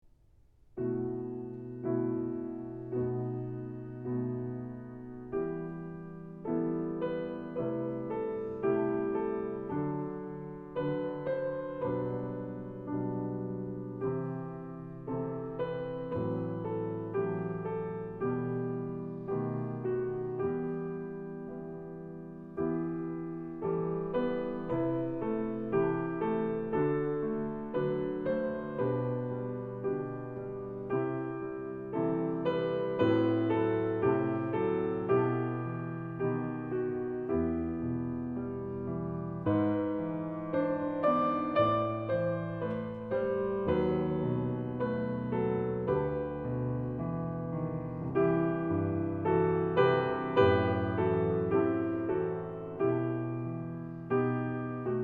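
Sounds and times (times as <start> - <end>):
piano: 0.0 - 55.0.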